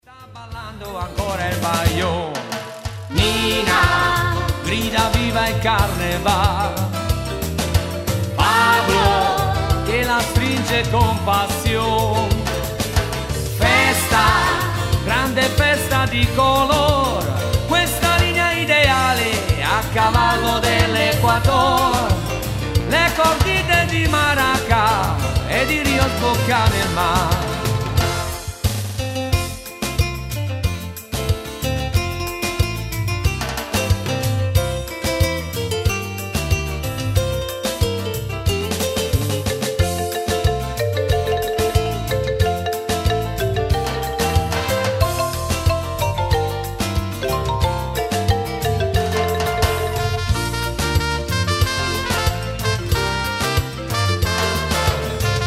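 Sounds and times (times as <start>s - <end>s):
maraca shaking: 0.8s - 55.4s.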